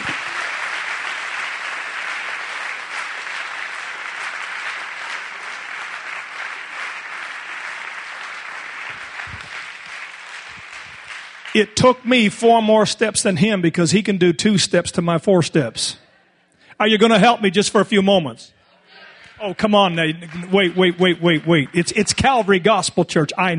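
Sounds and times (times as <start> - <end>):
audience clapping hands: 0.0 - 12.5, 19.2 - 23.5
speech: 11.6 - 16.0, 16.8 - 18.6, 19.4 - 23.5.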